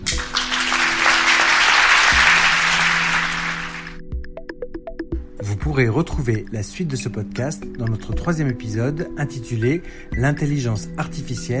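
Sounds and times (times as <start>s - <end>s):
audience clapping: 0.0s - 4.0s
speech: 5.7s - 11.5s.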